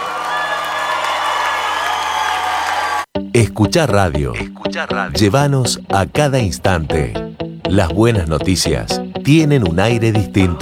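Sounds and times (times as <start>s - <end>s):
audience whooping and shouting: 0.0s - 3.1s
large audience applauding: 0.0s - 3.1s
speech: 3.6s - 10.6s.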